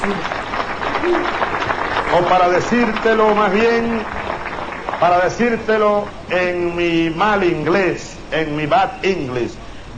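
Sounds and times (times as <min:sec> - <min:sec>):
speech: 0:00.0 - 0:00.4, 0:01.0 - 0:01.4, 0:02.1 - 0:04.2, 0:04.9 - 0:09.9
audience applauding a speech: 0:00.0 - 0:06.6.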